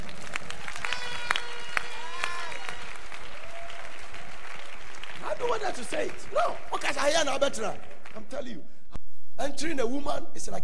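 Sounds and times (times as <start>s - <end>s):
audience applause: 0.0s - 8.3s
speech: 5.5s - 8.8s, 9.4s - 10.6s.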